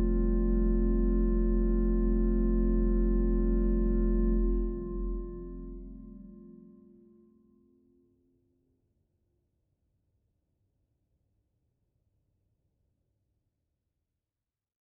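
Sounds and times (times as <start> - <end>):
organ melody played by an organist: 0.0 - 7.1.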